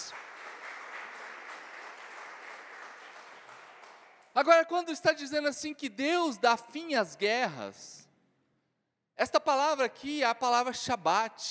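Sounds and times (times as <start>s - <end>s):
audience applauding: 0.0s - 4.3s
speech: 4.4s - 8.0s, 9.2s - 11.5s.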